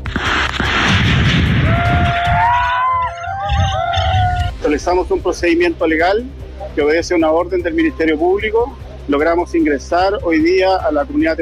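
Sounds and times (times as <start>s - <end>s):
gunshots: 0.0s - 2.5s
loud chaotic outdoor noise: 0.0s - 11.4s
siren wailing: 1.6s - 5.2s
speech: 4.8s - 11.4s.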